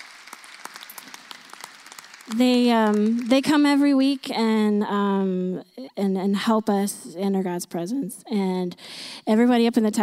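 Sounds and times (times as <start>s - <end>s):
audience applause: 0.0s - 3.8s
speech: 2.3s - 10.0s.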